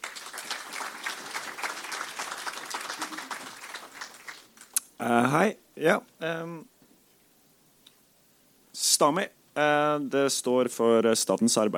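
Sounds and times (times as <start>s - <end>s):
audience applause: 0.0s - 4.8s
speech: 5.0s - 6.7s, 9.0s - 11.7s.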